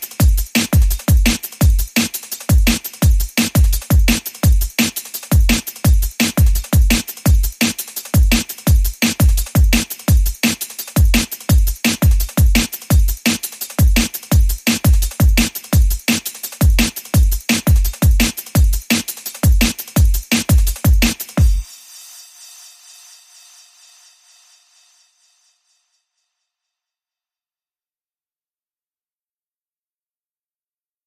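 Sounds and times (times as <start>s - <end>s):
crackling beat: 0.0s - 21.7s.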